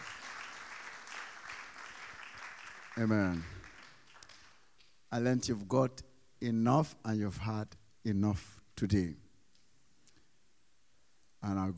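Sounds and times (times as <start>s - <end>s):
audience clapping: 0.0s - 4.9s
speech: 3.0s - 3.6s, 5.1s - 9.2s, 11.4s - 11.7s.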